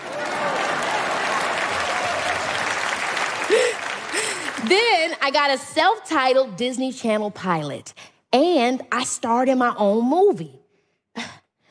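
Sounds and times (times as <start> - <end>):
audience applause: 0.0 - 5.2
speech: 4.7 - 10.6.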